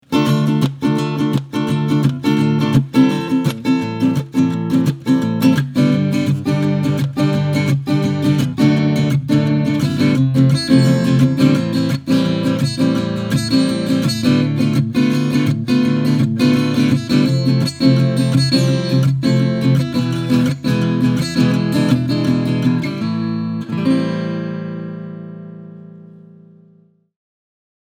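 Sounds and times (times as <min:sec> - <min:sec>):
Cort Gold Mini guitar strumming: 0:00.0 - 0:26.8.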